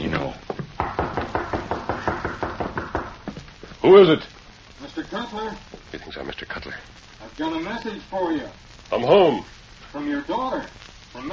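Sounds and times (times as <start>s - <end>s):
rapid knocking on the rear door of a house: 0.5s - 3.4s
speech: 3.8s - 4.3s, 5.2s - 11.3s.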